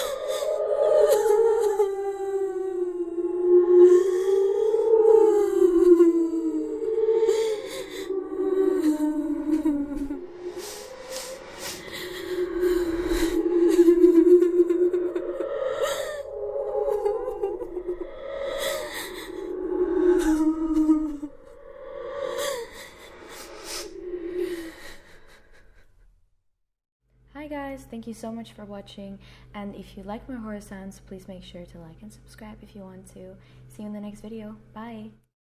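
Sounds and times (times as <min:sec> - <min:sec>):
creepy ghost crying and weeping horror sound effect: 0:00.0 - 0:25.9.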